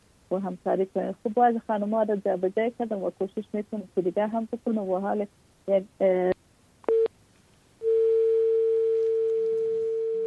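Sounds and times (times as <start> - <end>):
speech: 0.3 - 6.4
telephone beeps after a guest's call was cut off: 6.9 - 7.1, 7.8 - 10.2.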